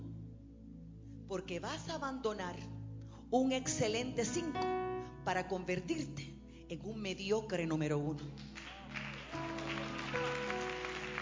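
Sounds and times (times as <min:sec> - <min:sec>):
speech: 0:01.3 - 0:08.5
audience applause: 0:08.4 - 0:11.2.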